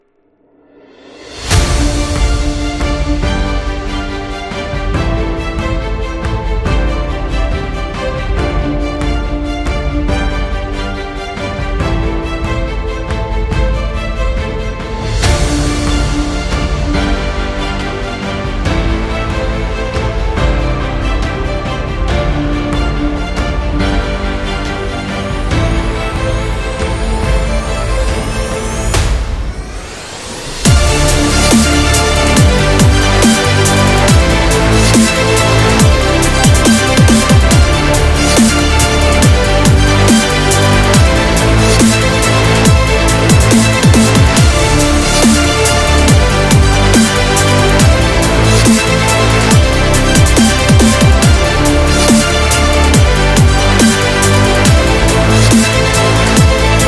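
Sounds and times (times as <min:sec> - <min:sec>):
epic dubstep music: 0:00.8 - 0:56.8.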